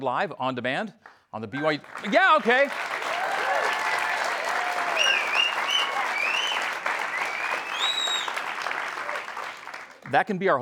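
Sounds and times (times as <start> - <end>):
speech: 0.0 - 3.0, 10.1 - 10.5
live studio audience applauding: 1.6 - 10.2
whoops and whistles from the crowd: 4.8 - 8.4.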